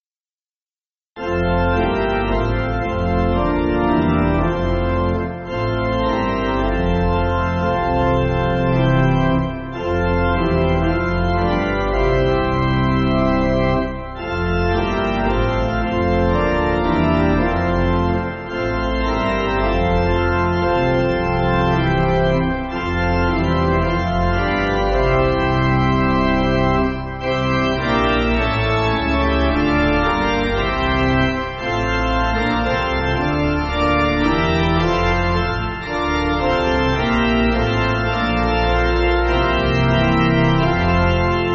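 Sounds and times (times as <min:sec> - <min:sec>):
church pipe organ backing: 0:01.2 - 0:41.5.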